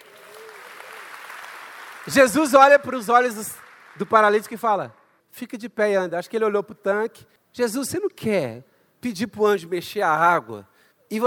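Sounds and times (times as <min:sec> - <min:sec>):
audience applauding: 0:00.0 - 0:04.6
speech: 0:02.0 - 0:11.2.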